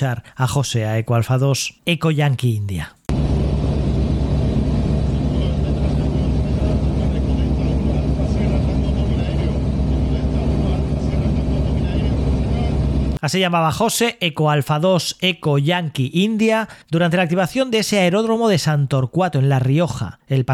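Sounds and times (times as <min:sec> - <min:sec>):
speech: 0:00.0 - 0:03.0, 0:13.2 - 0:20.5
small propeller airplane engine: 0:03.1 - 0:13.2.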